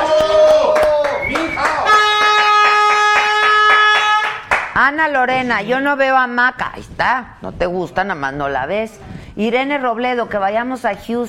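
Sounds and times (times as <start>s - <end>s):
applause: 0.0s - 4.8s
speech: 4.9s - 11.2s.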